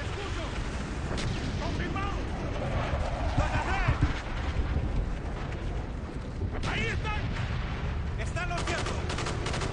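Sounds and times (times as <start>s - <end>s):
heavy booming bursts: 0.2s - 9.5s
video game gunfire: 8.6s - 9.7s.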